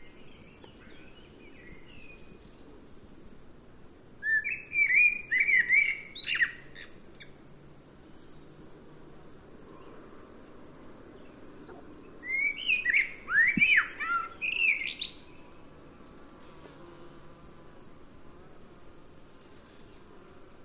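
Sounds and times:
common blackbird singing: 4.2 - 7.0, 12.2 - 15.2.

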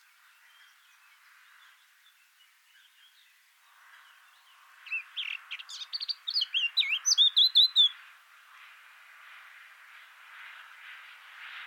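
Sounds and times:
Eurasian blackcap warbling song: 4.9 - 8.0.

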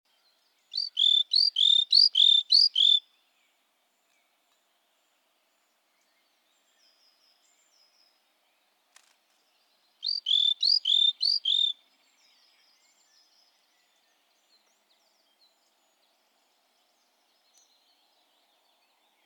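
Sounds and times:
great tit singing: 0.7 - 3.0, 10.0 - 11.8
faint click: 17.5 - 17.7.

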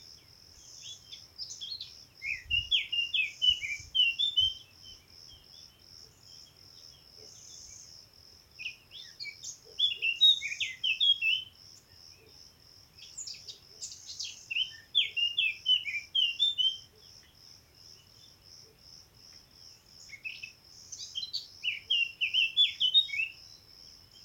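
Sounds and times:
Eurasian blackcap singing: 0.9 - 5.0, 8.6 - 11.5, 13.1 - 16.9, 20.1 - 23.4.

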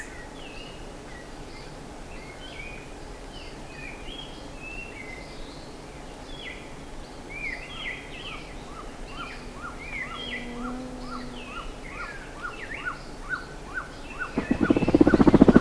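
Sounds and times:
bird short sharp upswept calls: 7.4 - 15.5.

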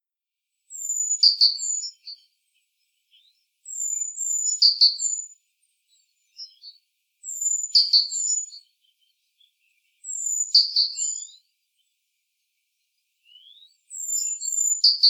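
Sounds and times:
great tit calling: 0.7 - 2.3, 3.2 - 5.4, 6.4 - 8.7, 10.0 - 11.4, 13.4 - 15.0.

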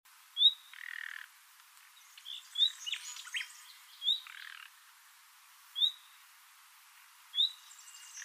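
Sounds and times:
common nightingale song of whistled notes, buzzy trills and chirps: 0.3 - 1.3, 1.9 - 4.8, 5.7 - 6.3, 7.3 - 8.2.

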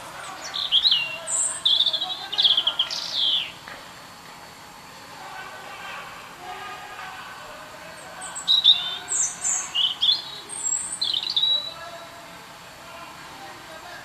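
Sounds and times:
European robin Erithacus rubecula singing: 0.2 - 3.6, 8.2 - 11.8.

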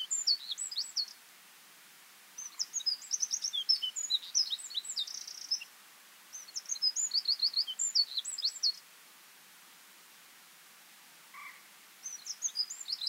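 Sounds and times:
Eurasian wren Troglodytes troglodytes song: 0.0 - 1.2, 2.3 - 8.9, 11.4 - 13.0.

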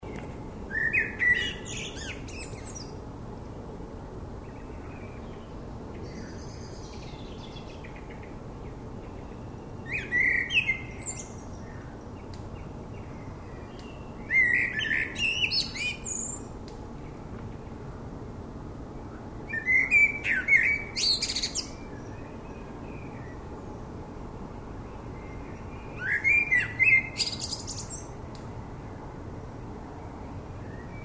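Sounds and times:
hiss: 0.0 - 31.0
common blackbird singing: 0.7 - 3.0, 4.5 - 8.4, 9.0 - 12.0, 13.0 - 16.5, 19.5 - 23.4, 24.9 - 28.2.

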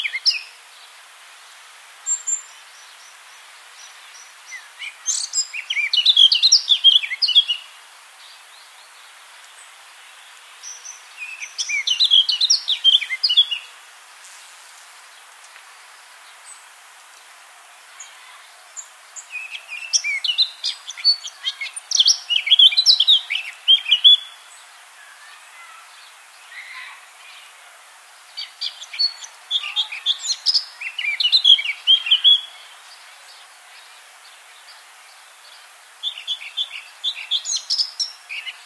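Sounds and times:
Eurasian blackcap song: 4.5 - 7.7, 10.7 - 13.7, 19.2 - 24.4, 28.4 - 32.6.

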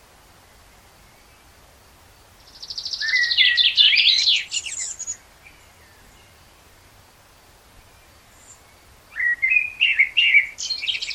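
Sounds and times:
Common blackbird singing, Turdus merula: 2.4 - 6.5, 7.9 - 11.1.

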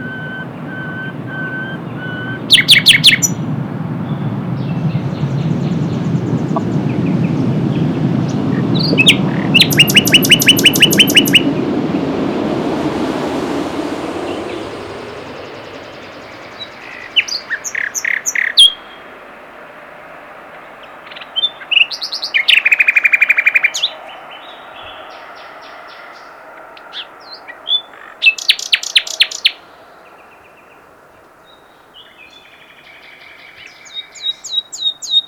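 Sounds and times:
common nightingale song: 0.0 - 3.4, 4.0 - 11.6, 15.0 - 19.1, 20.5 - 35.2
steady low rumbling background noise: 3.4 - 17.8.

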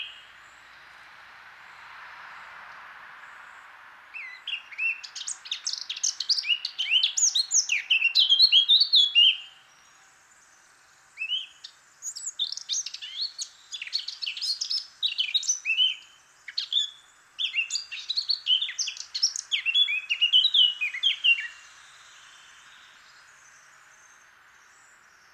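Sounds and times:
Eurasian blackcap warbling song: 0.0 - 0.3, 4.2 - 9.6, 11.2 - 23.0.

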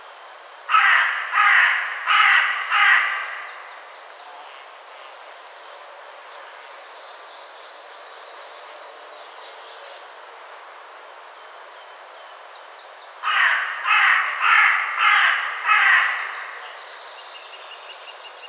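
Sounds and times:
Carrion crow Corvus corone cawing: 0.7 - 3.7, 13.2 - 16.8.

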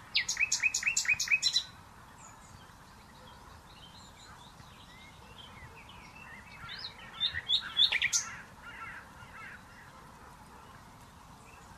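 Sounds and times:
common nightingale singing: 0.0 - 11.7.

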